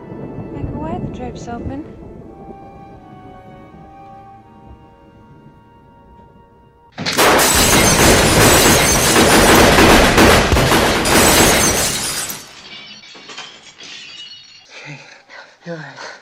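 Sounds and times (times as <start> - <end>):
speech: 1.0 - 2.0
rapid burst of gunfire: 7.0 - 11.9
window glass shattering from gunshots: 7.0 - 14.8
scattered tinkling glass debris: 7.2 - 9.5, 11.0 - 15.3.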